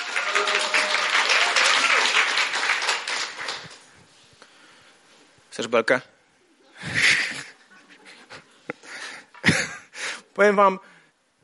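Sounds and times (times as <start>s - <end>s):
crowd applauding: 0.0s - 3.9s
speech: 0.4s - 0.8s, 5.6s - 6.1s, 10.4s - 10.9s.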